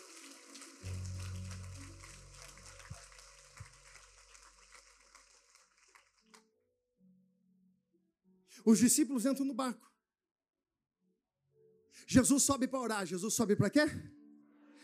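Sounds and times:
audience applauding: 0.0s - 6.4s
speech: 8.6s - 9.9s, 12.2s - 14.2s.

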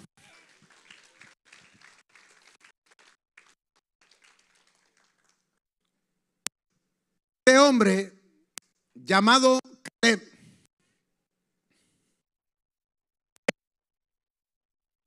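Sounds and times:
audience applause: 0.0s - 5.6s
speech: 7.7s - 8.2s, 9.1s - 10.3s.

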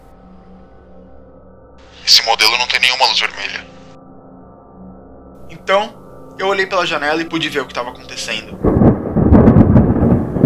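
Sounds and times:
speech: 2.1s - 3.7s, 5.7s - 8.7s
thunderstorm thunder: 8.5s - 10.4s.

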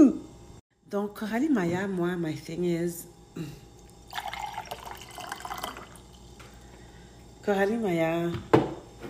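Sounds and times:
speech: 0.9s - 4.2s, 7.4s - 8.6s
water pouring into a glass: 3.9s - 6.3s.

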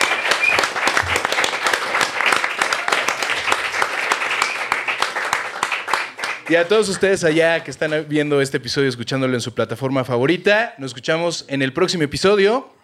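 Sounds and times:
live audience applause: 0.0s - 7.3s
speech: 6.5s - 12.8s.

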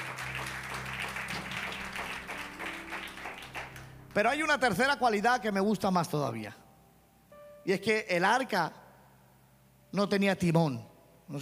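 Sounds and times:
applause to God: 0.0s - 4.3s
speech: 4.2s - 6.6s, 7.6s - 8.8s, 9.9s - 11.4s.

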